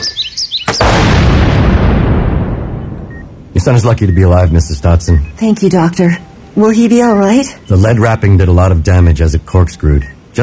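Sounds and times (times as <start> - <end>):
firework torpedo blast struck with a rake: 0.7 - 3.1
faint high chirping tones: 2.6 - 10.4
speech: 3.6 - 10.4.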